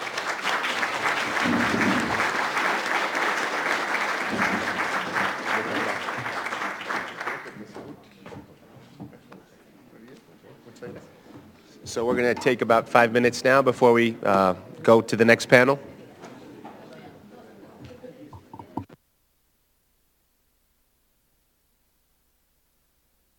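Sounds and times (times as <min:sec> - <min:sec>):
audience applause: 0:00.0 - 0:07.8
speech: 0:12.0 - 0:15.9.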